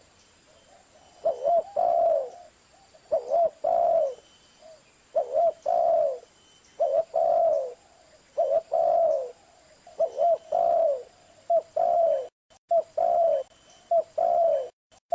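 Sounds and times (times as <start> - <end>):
spotted dove cooing: 0.7 - 15.1.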